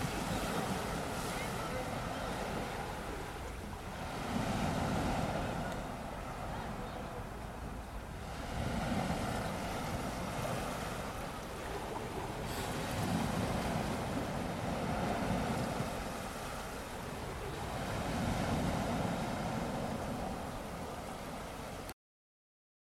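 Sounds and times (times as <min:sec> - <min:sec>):
sea: 0:00.0 - 0:22.0.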